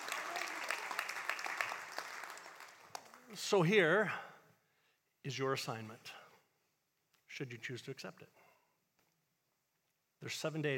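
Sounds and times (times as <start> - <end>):
audience clapping: 0.0 - 3.4
speech: 3.3 - 4.3, 5.2 - 6.2, 7.3 - 8.4, 10.2 - 10.7.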